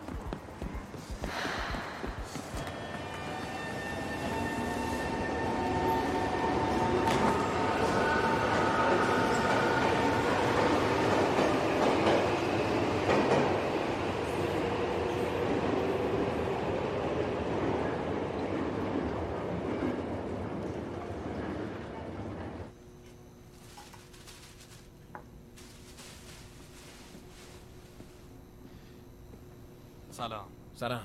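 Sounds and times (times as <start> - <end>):
last train of the night pulling out of a station, rumbling: 0.0 - 22.7
thin tonal squeals of a departing train: 2.6 - 6.9.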